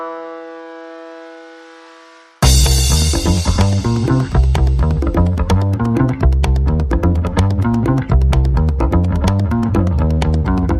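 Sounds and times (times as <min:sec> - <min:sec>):
bass: 0:02.4 - 0:10.7
percussion: 0:02.4 - 0:10.7.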